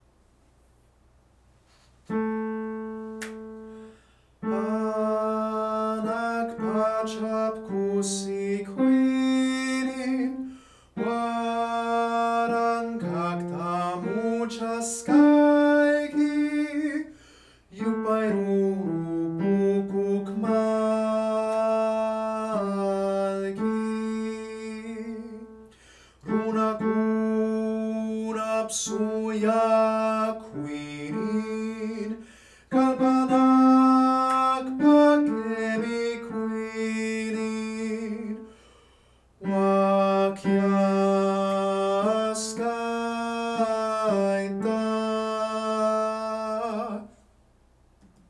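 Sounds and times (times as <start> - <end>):
tenor singing: 2.1 - 38.6, 39.4 - 47.2.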